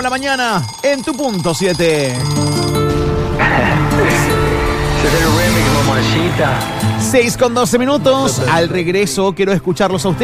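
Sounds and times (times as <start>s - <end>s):
speech: 0.0s - 2.6s, 5.0s - 10.2s
alarm clock ringing: 0.0s - 7.2s.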